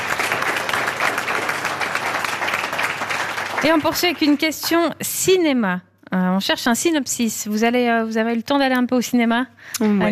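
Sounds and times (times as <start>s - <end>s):
audience applauding the guest: 0.0s - 4.7s
speech: 3.6s - 10.0s.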